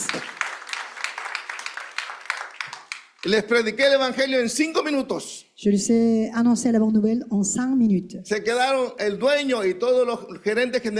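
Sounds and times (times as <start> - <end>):
audience applause: 0.0 - 3.4
speech: 3.2 - 10.9.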